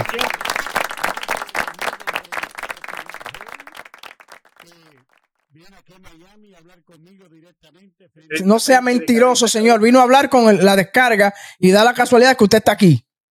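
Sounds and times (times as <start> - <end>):
speech: 0.0 - 0.4, 5.9 - 13.1
laughter: 0.0 - 5.0, 5.6 - 9.6
audience applause: 0.0 - 5.2.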